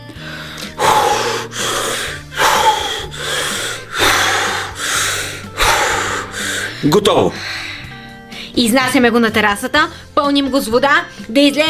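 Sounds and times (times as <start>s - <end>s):
person blowing air by mouth into an inflatable pool: 0.1s - 6.8s
speech: 6.8s - 7.6s, 8.6s - 11.6s.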